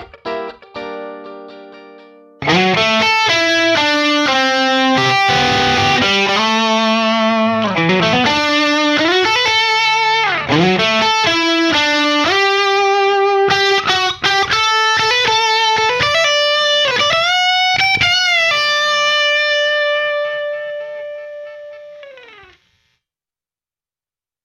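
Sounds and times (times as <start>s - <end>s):
guitar through Yamaha Rev7: 0.0s - 22.8s
vintage electric bass B: 2.4s - 18.1s.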